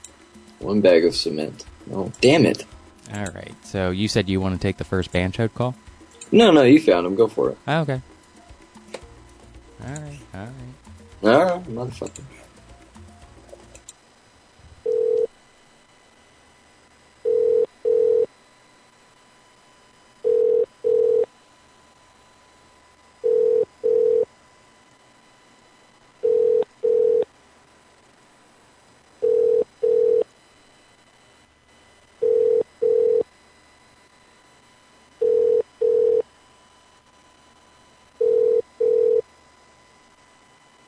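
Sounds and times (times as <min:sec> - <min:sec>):
speech: 0:00.6 - 0:08.1, 0:09.8 - 0:12.4
telephone ringing unanswered: 0:14.8 - 0:15.3, 0:17.2 - 0:18.3, 0:20.2 - 0:21.3, 0:23.2 - 0:24.3, 0:26.2 - 0:27.2, 0:29.2 - 0:30.3, 0:32.2 - 0:33.2, 0:35.2 - 0:36.2, 0:38.2 - 0:39.2.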